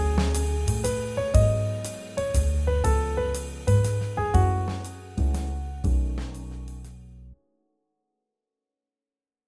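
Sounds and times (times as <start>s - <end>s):
swing jazz: 0.0s - 7.2s.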